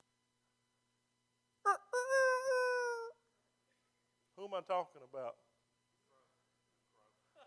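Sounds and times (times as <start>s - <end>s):
person imitating rooster crow: 1.7s - 3.2s
speech: 4.5s - 5.5s.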